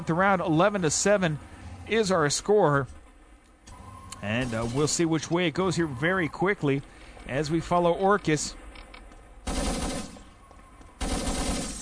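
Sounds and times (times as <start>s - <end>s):
speech: 0.0s - 3.0s, 4.2s - 8.6s
video game gunfire: 9.4s - 10.4s, 11.0s - 11.7s.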